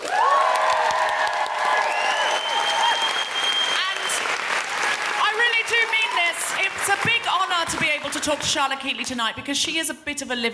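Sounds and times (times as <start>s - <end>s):
audience round of applause: 0.0s - 8.9s
speech: 8.2s - 10.5s.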